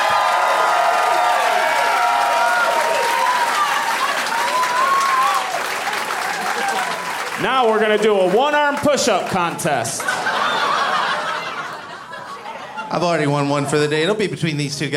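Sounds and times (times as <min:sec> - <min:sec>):
scattered whoops: 0:00.0 - 0:07.2
audience applause and cheering: 0:00.0 - 0:11.9
laughter: 0:06.2 - 0:07.1, 0:09.6 - 0:13.7
speech: 0:07.4 - 0:10.3, 0:12.9 - 0:14.9.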